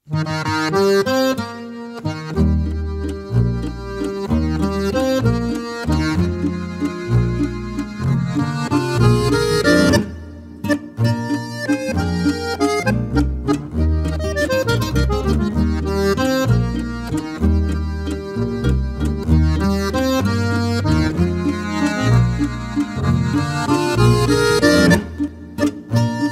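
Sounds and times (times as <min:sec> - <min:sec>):
waltz music: 0:00.1 - 0:26.3.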